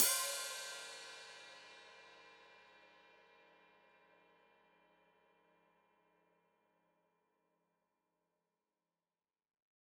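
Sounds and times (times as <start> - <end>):
open hi-hat played with foot: 0.0 - 1.7.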